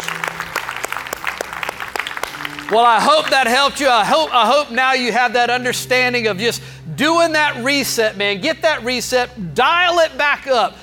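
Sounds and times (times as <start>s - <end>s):
audience applauding: 0.0s - 4.4s
speech: 2.7s - 10.8s.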